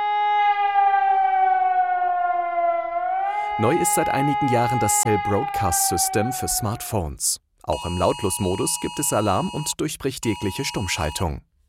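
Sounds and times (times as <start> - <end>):
civil defense warning siren wailing: 0.0 - 7.1
speech: 3.6 - 11.5.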